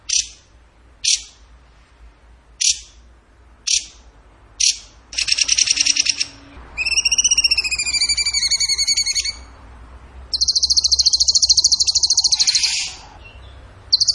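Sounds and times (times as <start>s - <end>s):
bird chips trill and whistles: 2.6s - 3.0s, 3.7s - 4.0s, 4.6s - 9.6s, 10.3s - 14.1s.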